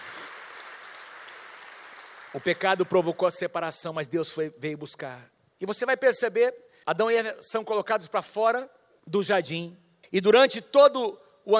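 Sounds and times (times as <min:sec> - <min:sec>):
audience applause: 0:00.0 - 0:03.0
speech: 0:02.3 - 0:11.5.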